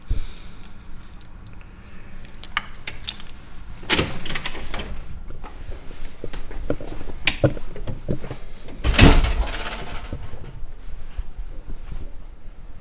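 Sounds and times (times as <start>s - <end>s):
two elevator doors opening: 0.6s - 11.0s
elevator going up: 1.3s - 6.2s, 6.8s - 10.8s.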